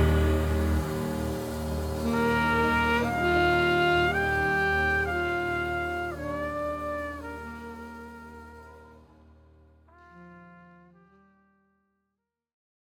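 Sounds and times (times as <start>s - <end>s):
gospel music: 0.0s - 8.1s.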